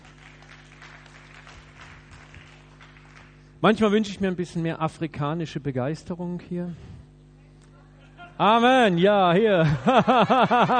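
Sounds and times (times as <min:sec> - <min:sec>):
faint audience applause: 0:00.0 - 0:03.6
speech: 0:03.6 - 0:06.9, 0:08.4 - 0:10.7
laughter: 0:07.9 - 0:10.7.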